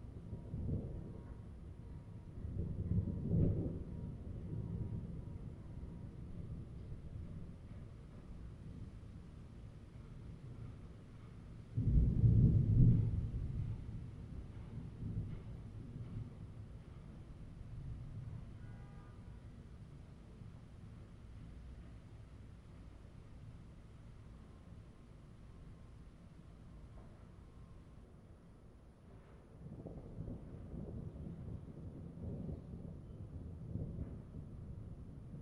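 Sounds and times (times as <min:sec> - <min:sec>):
thunder: 0:00.0 - 0:09.4, 0:10.0 - 0:19.4, 0:29.2 - 0:35.4
rain: 0:00.0 - 0:35.4.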